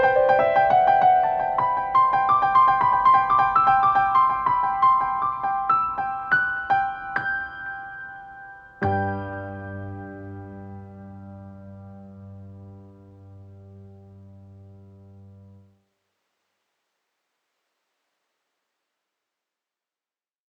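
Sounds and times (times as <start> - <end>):
piano: 0.0 - 15.8.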